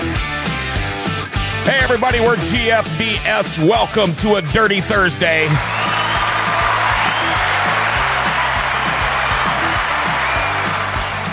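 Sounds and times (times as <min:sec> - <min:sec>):
rhythmic low bass line: 0:00.0 - 0:11.3
speech: 0:01.6 - 0:05.8
recorded applause sound effect: 0:05.4 - 0:11.3.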